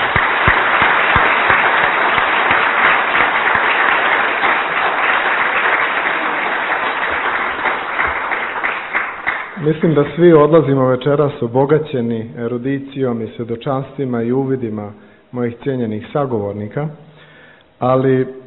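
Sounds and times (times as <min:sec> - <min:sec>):
audience applause for speakers at a discussion event: 0:00.0 - 0:10.3
speech: 0:09.6 - 0:17.0, 0:17.8 - 0:18.4.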